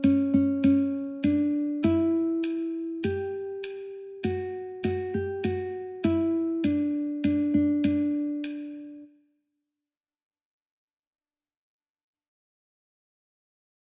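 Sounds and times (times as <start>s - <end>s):
guitar: 0.0s - 9.1s.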